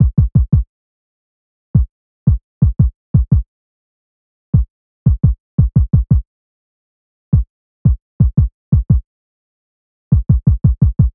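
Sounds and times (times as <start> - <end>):
kick drum in E minor: 0.0 - 0.7, 1.8 - 3.5, 4.6 - 6.3, 7.3 - 9.1, 10.1 - 11.1.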